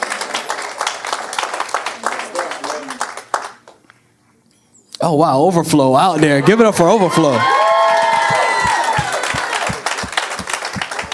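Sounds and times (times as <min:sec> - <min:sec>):
crowd clapping: 0:00.0 - 0:03.8, 0:07.0 - 0:11.1
speech: 0:05.0 - 0:07.5.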